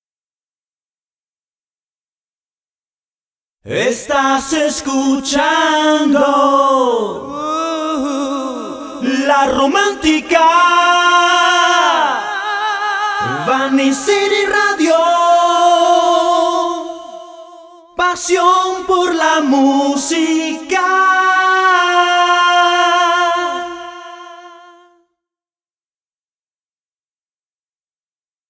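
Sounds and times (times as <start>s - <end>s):
pop voices singing an a cappella jingle: 3.7s - 25.1s.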